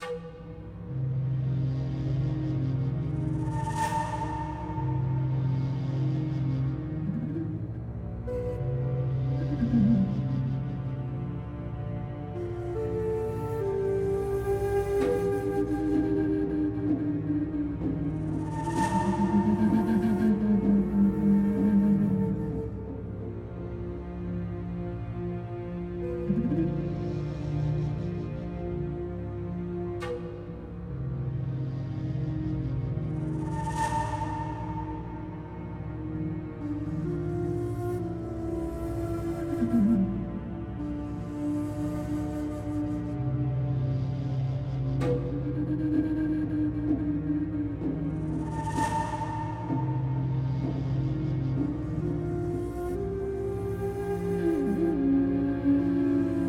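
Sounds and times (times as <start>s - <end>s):
ambient music: 0.0s - 56.4s.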